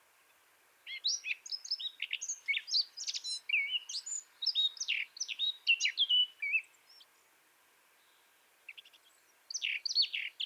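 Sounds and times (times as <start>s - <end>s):
Eurasian blackcap Sylvia atricapilla song: 0.8s - 7.1s, 8.7s - 10.4s.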